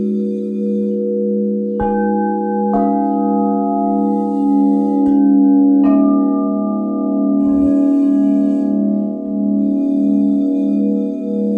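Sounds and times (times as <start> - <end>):
Alchemy large crystal bowls: 0.0 - 11.5.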